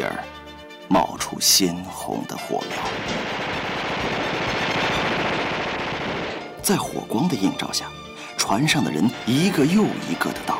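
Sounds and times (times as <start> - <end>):
speech: 0.0 - 4.6, 6.6 - 10.5
many guns firing at once at a boat: 2.8 - 7.0.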